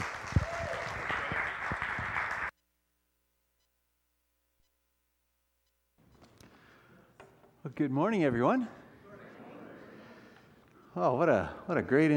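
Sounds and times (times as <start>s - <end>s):
church audience applause at Hillside welcoming a guest speaker: 0.0s - 2.5s
speech: 7.6s - 8.8s, 11.0s - 12.1s.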